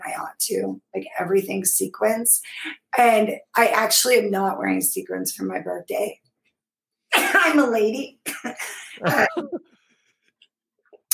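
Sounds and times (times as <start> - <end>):
speech: 0.2 - 6.2, 7.4 - 9.7
woman coughing: 7.2 - 7.6, 8.3 - 9.6
laughter: 8.8 - 9.7.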